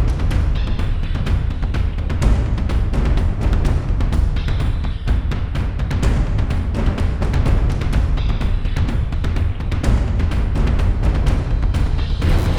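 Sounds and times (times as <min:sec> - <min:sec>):
percussion: 0:00.0 - 0:12.5.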